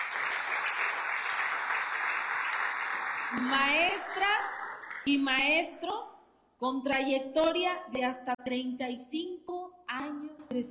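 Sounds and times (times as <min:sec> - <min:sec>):
applause: 0:00.0 - 0:05.1
speech: 0:03.3 - 0:10.6.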